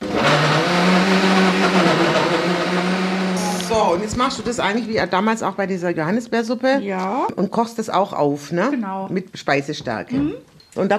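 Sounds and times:
blender pureeing peaches: 0:00.0 - 0:05.2
speech: 0:03.9 - 0:10.9.

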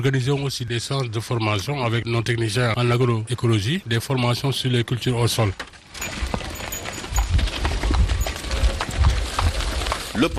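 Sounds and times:
speech: 0:00.0 - 0:06.2, 0:10.2 - 0:10.3
road noise: 0:04.3 - 0:10.3
horse-drawn garbage cart rattling: 0:05.1 - 0:10.3
horse hoofbeats of a garbage cart: 0:05.8 - 0:10.3.

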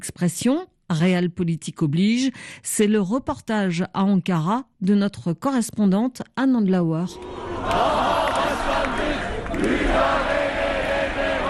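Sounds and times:
speech: 0:00.0 - 0:08.1
opposition party activists shouting in anger: 0:07.2 - 0:11.4.

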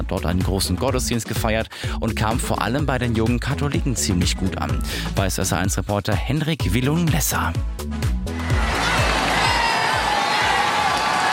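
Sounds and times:
speech: 0:00.1 - 0:08.1
crowd cheering for pope's motorcade: 0:08.3 - 0:11.3.

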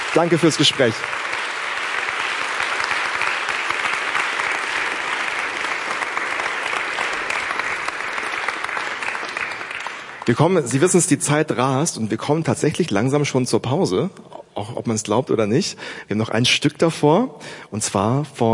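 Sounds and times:
audience applause: 0:00.0 - 0:11.0
speech: 0:00.1 - 0:01.4, 0:10.3 - 0:18.5.

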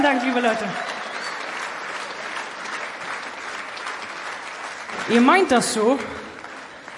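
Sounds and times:
speech: 0:00.0 - 0:01.0, 0:05.1 - 0:06.2
audience applause: 0:00.0 - 0:06.9.

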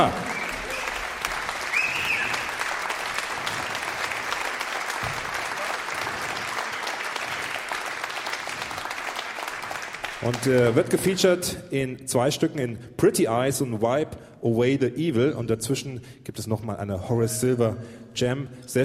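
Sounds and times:
speech: 0:00.0 - 0:00.2, 0:10.2 - 0:18.8
audience applause for musician: 0:00.0 - 0:11.1.

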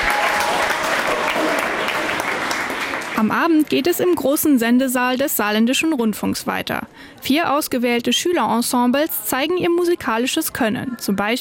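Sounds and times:
audience applause: 0:00.0 - 0:03.7
speech: 0:03.2 - 0:11.4.

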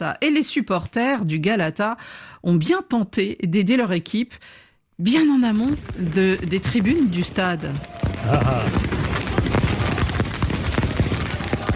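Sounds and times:
speech: 0:00.0 - 0:09.0
firecrackers and fireworks outside a hotel at night: 0:05.5 - 0:11.7
faint crowd noise: 0:07.0 - 0:11.7.

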